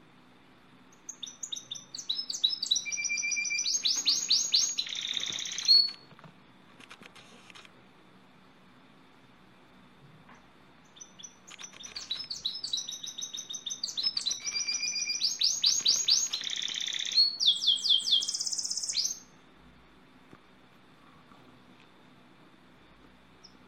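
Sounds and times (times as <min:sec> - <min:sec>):
canary singing: 0:00.9 - 0:06.1, 0:10.8 - 0:19.4.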